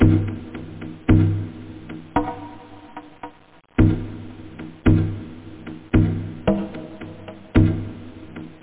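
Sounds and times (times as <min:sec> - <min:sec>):
conga percussion loop: 0:00.0 - 0:08.6.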